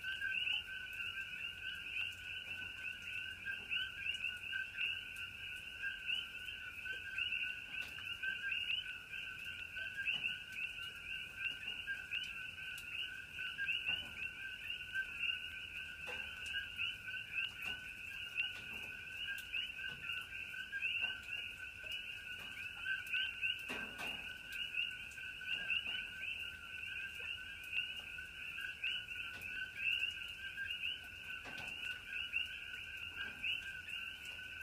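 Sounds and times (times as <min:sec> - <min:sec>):
coqui frogs chorusing: 0:00.0 - 0:34.6
light rain: 0:00.0 - 0:34.6.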